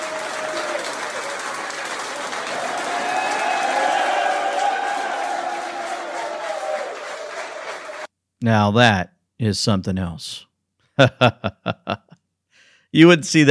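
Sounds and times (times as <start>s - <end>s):
college frat house crowd clapping and cheering: 0.0s - 8.1s
people shouting excitedly: 2.5s - 7.0s
speech: 8.4s - 12.0s, 12.9s - 13.5s
laughter: 11.0s - 12.2s.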